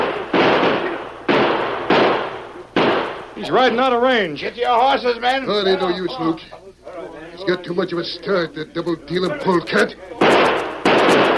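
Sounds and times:
gunshots fired at fleeing rider: 0.0 - 3.8, 10.2 - 11.3
speech: 3.4 - 6.7, 7.4 - 10.5.

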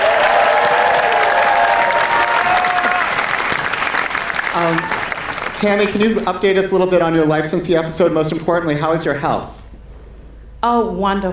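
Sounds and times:
audience applause: 0.0 - 6.9
speech: 5.6 - 9.6, 10.6 - 11.3.

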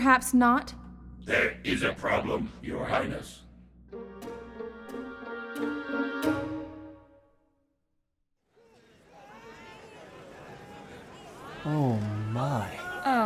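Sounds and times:
speech: 0.0 - 3.4
dense market day crowd murmuring and chattering: 8.6 - 13.2.

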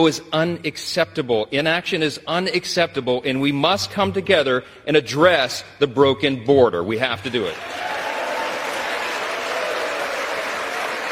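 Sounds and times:
speech: 0.0 - 7.9
large crowd applause in a chamber: 7.5 - 11.1.

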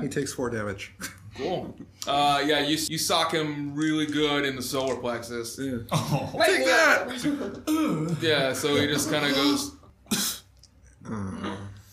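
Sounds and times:
speech: 0.0 - 9.8
voice imitating a sneeze: 9.1 - 10.6.

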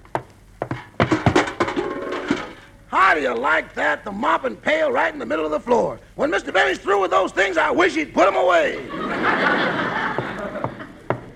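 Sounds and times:
knocking on a wooden door: 0.1 - 1.5
speech: 2.9 - 9.4
laughter: 8.6 - 11.3.

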